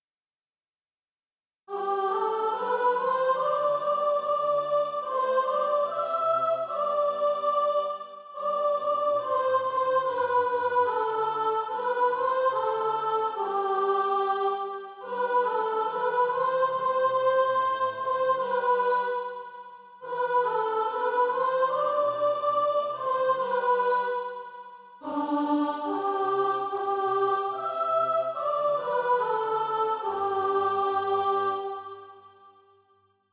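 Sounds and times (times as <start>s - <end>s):
soprano singing practice music: 1.7s - 19.4s, 20.0s - 32.2s.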